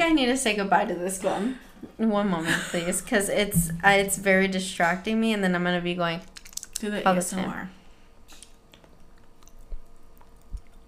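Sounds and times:
speech: 0.0s - 7.8s
soft low thumps: 3.4s - 4.4s
wrapper being undone: 6.3s - 6.9s.

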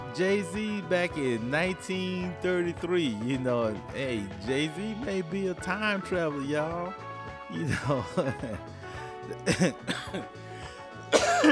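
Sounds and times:
speech: 0.2s - 10.4s
laughter: 7.6s - 10.4s
throat clearing after choking: 9.2s - 10.4s, 11.1s - 11.4s
person coughing after choking: 9.3s - 10.4s, 11.1s - 11.4s.

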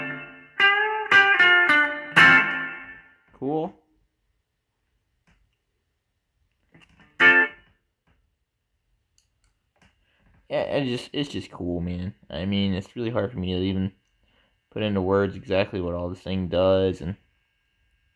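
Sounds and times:
bright electric guitar chords through spring and chamber reverb: 0.0s - 3.2s, 7.2s - 7.7s
speech: 3.4s - 3.8s, 10.5s - 14.0s, 14.8s - 17.2s.

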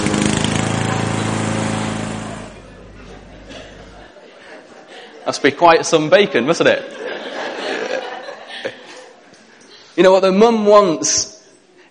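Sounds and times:
lawn mower running: 0.0s - 3.6s
laughter: 2.2s - 9.5s
speech: 5.3s - 7.1s, 10.0s - 11.3s.

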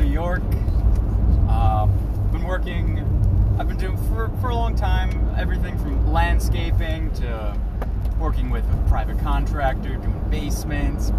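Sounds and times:
road noise: 0.0s - 11.1s
van engine rumble while driving: 0.0s - 11.1s
speech: 4.3s - 11.1s.

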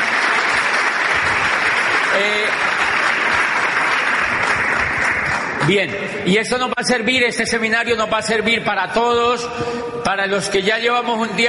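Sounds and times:
crowd clapping: 0.0s - 5.9s
speech: 5.6s - 11.4s.

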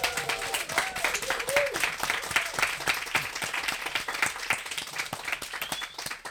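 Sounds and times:
crowd cheers and whoops: 0.0s - 2.8s
live crowd applauding: 0.0s - 6.2s.

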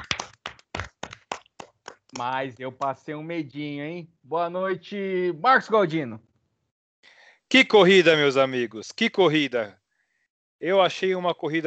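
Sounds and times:
hands clapping: 0.0s - 3.0s
speech: 2.2s - 6.3s, 7.5s - 9.8s, 10.6s - 11.6s.

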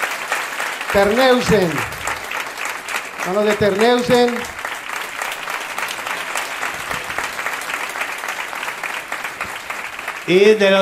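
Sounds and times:
audience applause: 0.0s - 10.8s
speech: 0.9s - 2.0s, 3.2s - 4.5s, 10.3s - 10.8s.

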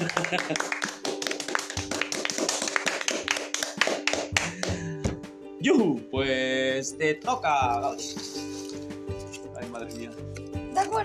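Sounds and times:
person laughing: 0.0s - 0.8s, 4.4s - 5.1s
hand clapping from a small group: 0.0s - 5.4s
speech: 0.3s - 0.8s, 5.6s - 8.5s, 9.9s - 11.0s.

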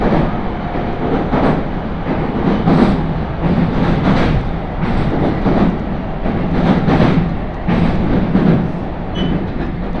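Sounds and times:
701-series Tohoku Line train rumbling leaving Sendai: 0.0s - 9.9s
clacks and rattling: 1.1s - 9.9s.

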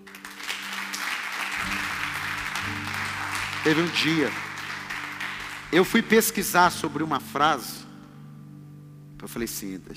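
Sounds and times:
audience applause: 0.0s - 6.6s
speech: 3.6s - 4.4s, 5.7s - 7.8s, 9.2s - 9.9s.

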